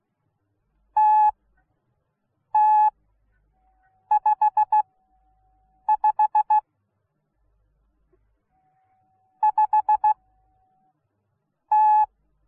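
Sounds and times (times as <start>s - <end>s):
morse code beeps: 1.0s - 1.4s, 2.6s - 2.9s, 4.1s - 4.9s, 5.8s - 6.6s, 9.4s - 10.3s, 11.7s - 12.1s.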